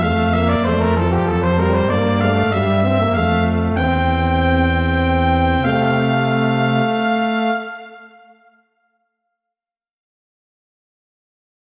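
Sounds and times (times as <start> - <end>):
musical trio: 0.0 - 8.4.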